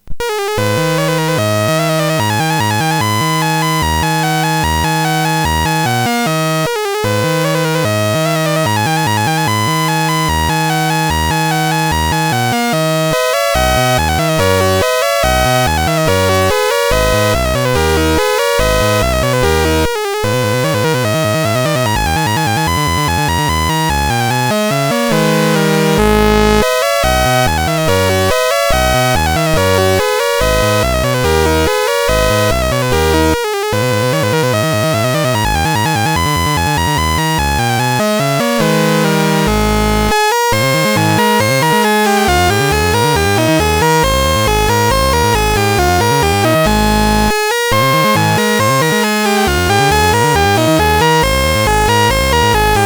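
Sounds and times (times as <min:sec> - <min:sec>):
SID CSG8580R5 chip music: 0:00.0 - 0:52.8.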